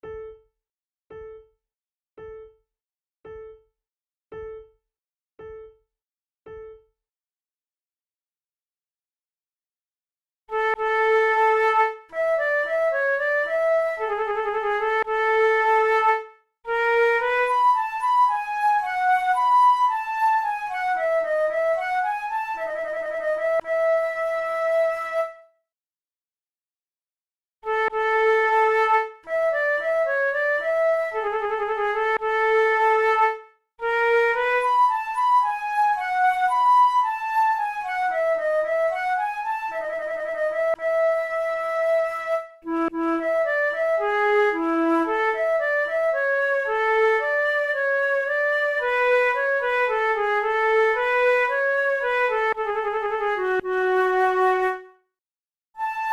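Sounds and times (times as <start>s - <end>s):
allemande played on flute: 10.5s - 25.5s, 27.7s - 55.0s, 55.8s - 56.1s.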